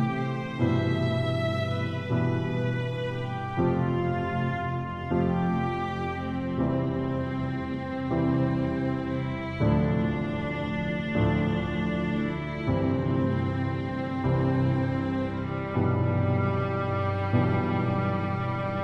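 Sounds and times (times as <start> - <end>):
piano playing funeral music: 0.0 - 18.8
viola playing funeral music: 0.0 - 18.8.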